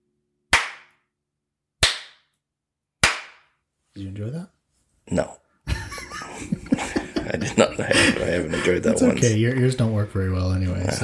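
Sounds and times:
hand clapping: 0.5s - 1.0s, 1.8s - 2.3s, 3.0s - 3.5s
speech: 4.0s - 4.5s, 5.1s - 5.4s, 7.8s - 11.0s
laughter: 5.7s - 10.0s, 10.7s - 11.0s.

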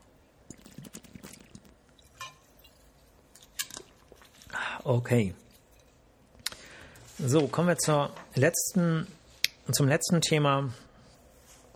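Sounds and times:
quick sip of a drink: 0.4s - 3.3s
speech: 4.8s - 5.4s, 7.2s - 10.9s.

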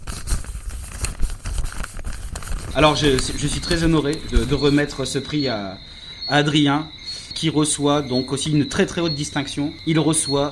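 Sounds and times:
envelope paper crinkling and tearing at an award presentation: 0.0s - 4.8s
speech: 2.8s - 10.5s.

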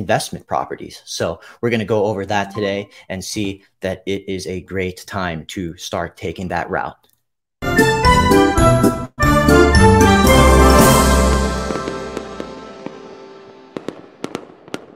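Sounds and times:
speech: 0.0s - 7.1s
podcast theme music: 2.4s - 3.0s, 7.6s - 13.8s.

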